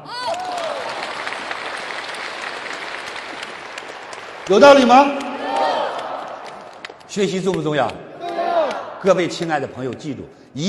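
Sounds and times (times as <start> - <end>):
audience applause: 0.2 - 7.1
speech: 4.5 - 5.2, 7.1 - 8.1, 9.0 - 10.6.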